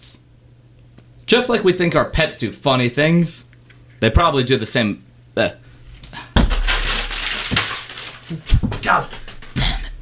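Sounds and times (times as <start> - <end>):
speech: 1.3 - 5.6, 8.3 - 9.2
sheet of paper being crumpled up: 6.4 - 9.6.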